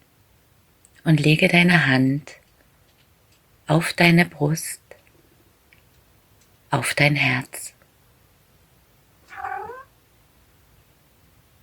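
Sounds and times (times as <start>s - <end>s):
speech: 1.0s - 2.4s, 3.7s - 4.8s, 6.7s - 7.8s
cat meowing: 9.3s - 9.9s.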